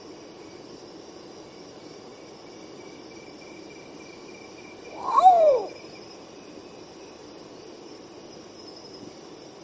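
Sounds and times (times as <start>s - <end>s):
long-tailed potoo singing wailing whistles: 4.9s - 5.8s.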